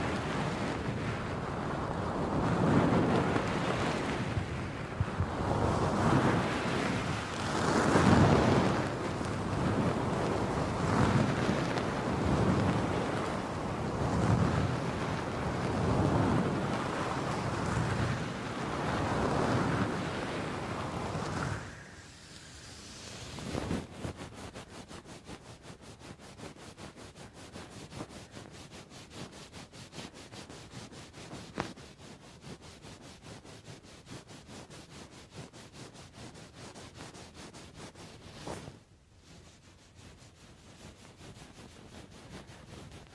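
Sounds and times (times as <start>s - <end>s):
wind buffeting a microphone's furry muff: 0.0s - 38.7s.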